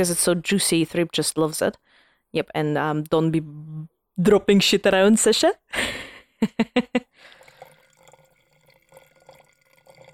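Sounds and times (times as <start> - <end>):
speech: 0.0 - 7.3
wine glugging from a bottle into a glass: 7.2 - 10.1.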